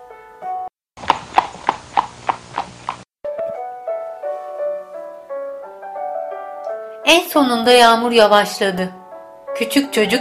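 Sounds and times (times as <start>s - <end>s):
horses trotting past: 1.0s - 3.1s
soft melodic music: 3.2s - 10.2s
speech: 7.1s - 9.0s, 9.6s - 10.2s.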